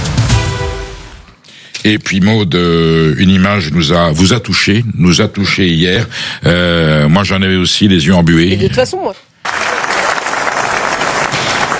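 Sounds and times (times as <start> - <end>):
speech: 1.8 - 9.3
standing ovation in the Palais du Festival de Cannes: 9.5 - 11.7.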